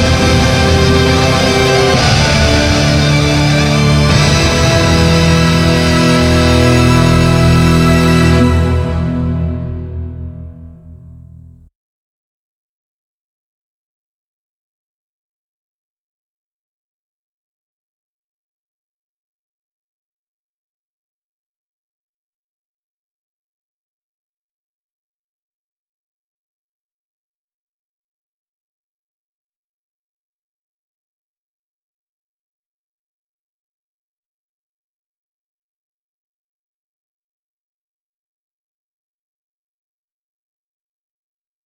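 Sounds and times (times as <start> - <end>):
instrumental remix: 0.0 - 11.6.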